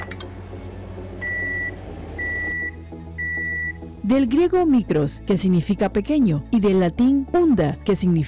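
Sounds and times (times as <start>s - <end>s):
microwave oven beeping: 0.0s - 4.4s
low humming: 0.0s - 4.6s
speech: 4.1s - 8.2s.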